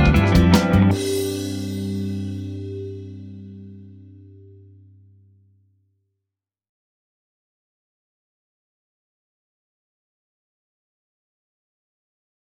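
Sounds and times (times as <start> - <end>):
corporate rock music: 0.0 - 4.3.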